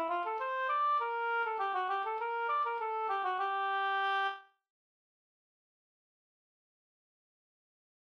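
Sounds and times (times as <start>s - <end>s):
Swedish polska folk tune: 0.0s - 4.4s.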